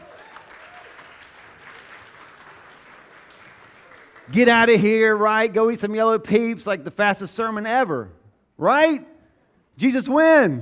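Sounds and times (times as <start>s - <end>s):
audience hand clapping: 0.0s - 4.8s
speech: 4.3s - 9.1s, 9.8s - 10.5s.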